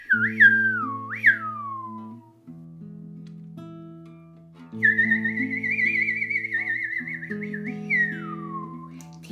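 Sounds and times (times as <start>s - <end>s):
mournful whistled tune with gliding falling notes: 0.0s - 2.3s, 4.7s - 9.2s.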